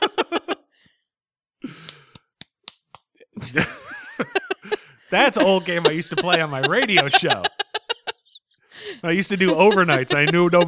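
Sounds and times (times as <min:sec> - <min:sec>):
laughter: 0:00.0 - 0:00.7, 0:03.4 - 0:10.6
hand slapping into the microphone: 0:01.8 - 0:03.1
speech: 0:03.4 - 0:04.3, 0:05.1 - 0:07.5, 0:09.0 - 0:10.6.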